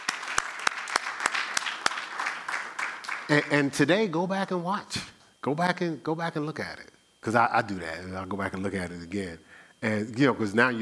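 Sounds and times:
audience hand clapping: 0:00.0 - 0:03.6
speech: 0:03.3 - 0:10.8.

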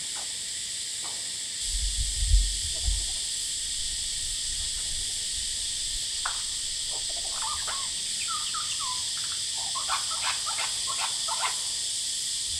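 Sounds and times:
heavy continuous cicada drone: 0:00.0 - 0:12.5
superb lyrebird singing: 0:06.9 - 0:11.7.

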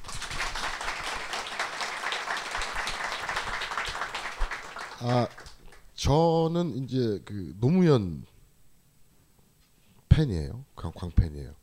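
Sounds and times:
audience applause: 0:00.0 - 0:05.8
speech: 0:05.0 - 0:05.4, 0:06.0 - 0:08.3, 0:10.2 - 0:11.6.

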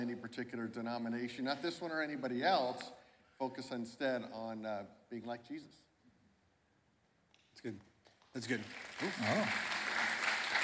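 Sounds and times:
speech: 0:00.0 - 0:05.9, 0:07.6 - 0:09.7
audience applause: 0:08.4 - 0:10.6.

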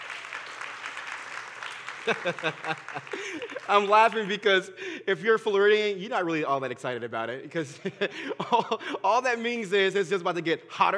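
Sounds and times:
audience applause: 0:00.0 - 0:04.5
laughter: 0:01.9 - 0:04.6, 0:07.6 - 0:09.2
speech: 0:02.0 - 0:10.9.

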